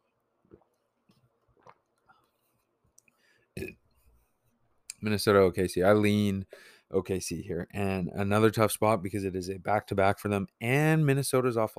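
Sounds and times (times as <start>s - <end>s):
person sipping water: 0.5s - 2.4s
speech: 5.0s - 11.7s.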